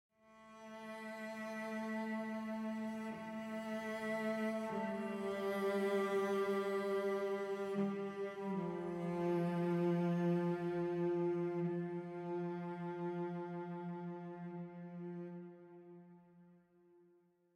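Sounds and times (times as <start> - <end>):
cellos playing: 0.3 - 16.1.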